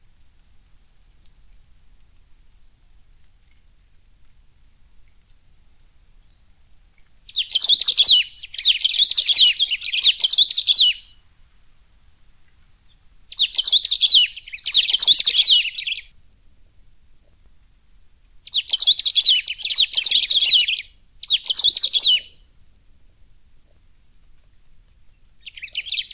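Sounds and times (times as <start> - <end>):
Saffron-billed sparrow singing rapid tangled twittering phrases: 7.3 - 11.2, 12.9 - 16.1, 18.5 - 22.4, 25.1 - 26.1.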